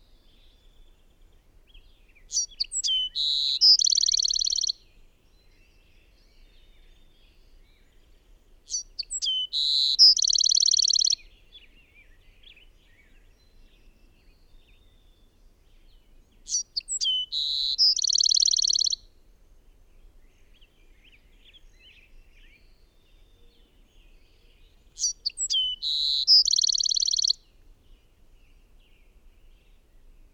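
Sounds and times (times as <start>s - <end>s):
bird whistle and trill: 2.3s - 4.8s, 8.7s - 11.2s, 16.5s - 19.0s, 25.0s - 27.4s.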